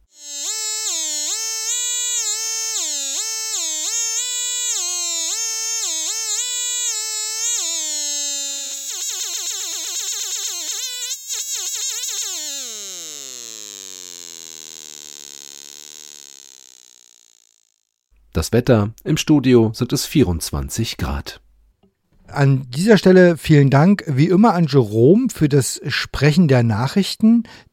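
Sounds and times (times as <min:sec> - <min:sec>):
optical theremin with NE555 multivibrator tone: 0:00.0 - 0:17.6
speech: 0:18.4 - 0:21.4, 0:22.4 - 0:27.7.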